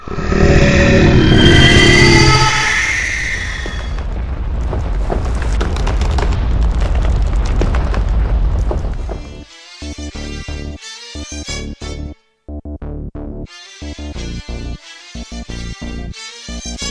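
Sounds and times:
earthquake roar: 0.0 - 8.6
building collapsing: 0.0 - 9.4.

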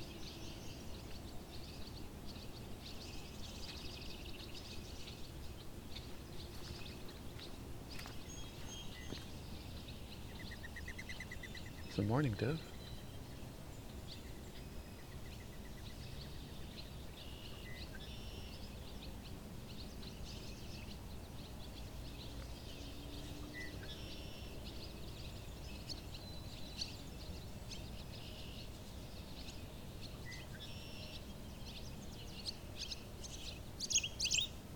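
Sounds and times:
barn swallows twittering and chirping: 0.0 - 34.6
speech: 12.0 - 12.7.

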